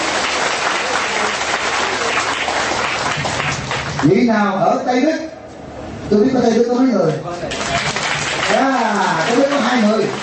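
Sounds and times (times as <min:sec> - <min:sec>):
Buddhist audience applause: 0:00.0 - 0:04.3, 0:07.1 - 0:10.2
speech: 0:04.0 - 0:05.3, 0:06.1 - 0:07.8, 0:08.5 - 0:10.2.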